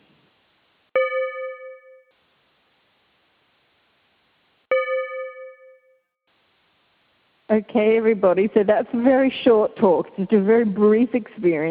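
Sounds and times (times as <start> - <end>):
soft hiss: 0.0 - 1.0, 2.1 - 4.7, 6.3 - 7.5
timer bell struck: 1.0 - 2.1, 4.7 - 6.0
speech: 7.5 - 11.7.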